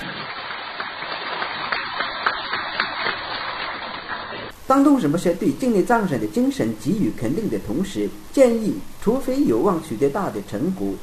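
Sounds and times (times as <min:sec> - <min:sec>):
warm applause from meeting audience: 0:00.0 - 0:04.5
speech: 0:04.7 - 0:11.0.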